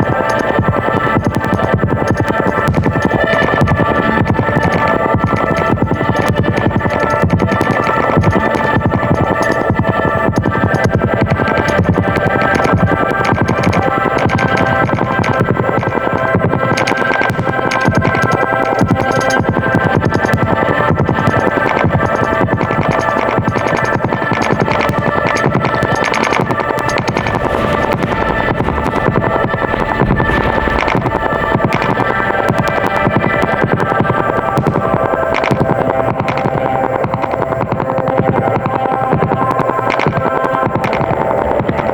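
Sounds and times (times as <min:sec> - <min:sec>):
fetal heartbeat signal: 0:00.0 - 0:34.8
noise: 0:00.0 - 0:41.9.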